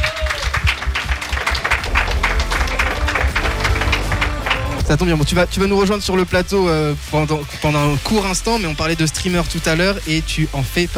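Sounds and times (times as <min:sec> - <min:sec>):
audience applause: 0:00.0 - 0:05.3
speech: 0:04.9 - 0:10.9.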